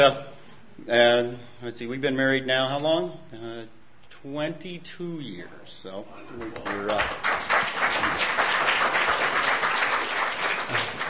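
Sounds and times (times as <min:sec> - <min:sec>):
speech: 0:00.0 - 0:08.2
audience applause: 0:06.4 - 0:11.0.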